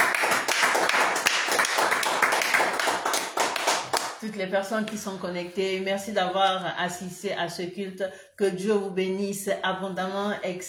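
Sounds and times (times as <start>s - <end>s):
congregation clapping at a church service: 0.0s - 4.2s
speech: 4.2s - 10.6s.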